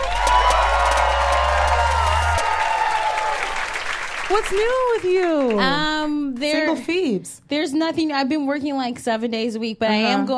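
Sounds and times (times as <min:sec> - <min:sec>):
whoops: 0:00.0 - 0:03.8
live crowd cheering and applauding: 0:00.0 - 0:06.7
speech: 0:04.3 - 0:10.3.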